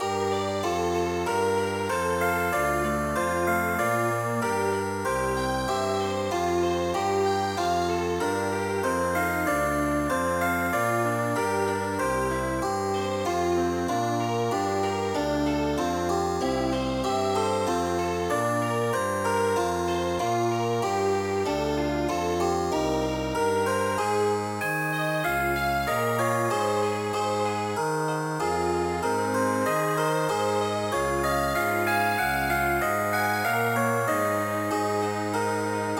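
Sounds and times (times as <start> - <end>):
chamber music: 0.0 - 35.9.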